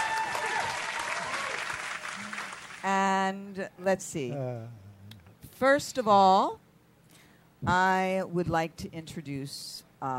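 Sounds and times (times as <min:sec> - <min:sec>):
studio audience applause: 0:00.0 - 0:02.9
speech: 0:03.6 - 0:04.8, 0:05.6 - 0:06.6, 0:07.6 - 0:10.1.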